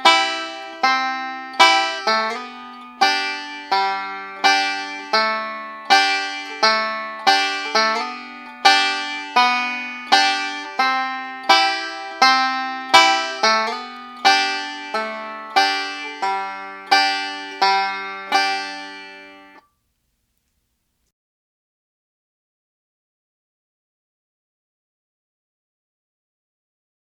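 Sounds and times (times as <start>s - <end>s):
banjo slide with pinch: 0.0s - 19.7s.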